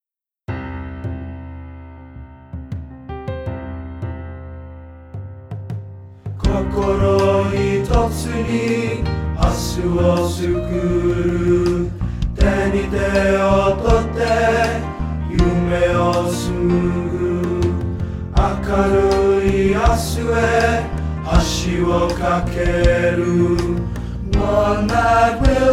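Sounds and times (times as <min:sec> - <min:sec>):
tenor singing in Coke building: 0:06.4 - 0:25.7.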